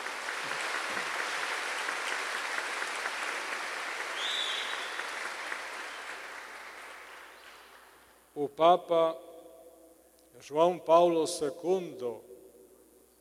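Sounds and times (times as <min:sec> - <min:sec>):
audience applause: 0:00.0 - 0:07.9
speech: 0:08.4 - 0:09.2, 0:10.4 - 0:12.3.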